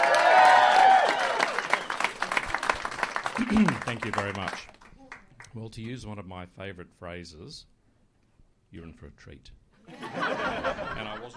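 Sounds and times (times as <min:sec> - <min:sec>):
audience applause: 0:00.0 - 0:05.4
person whistling or cheering: 0:01.6 - 0:02.2
laughter: 0:03.3 - 0:04.1, 0:09.8 - 0:11.3
speech: 0:03.4 - 0:04.8, 0:05.5 - 0:07.7, 0:08.7 - 0:11.3.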